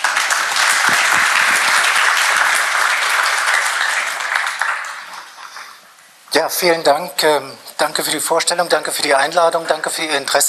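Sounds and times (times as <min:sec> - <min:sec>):
audience applause for a speaker: 0:00.0 - 0:05.9
speech: 0:06.4 - 0:10.4.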